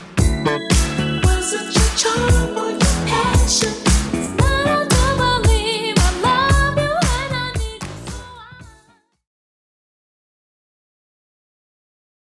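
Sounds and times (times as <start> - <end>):
80s Redrum drum machine beat: 0.0 - 8.8.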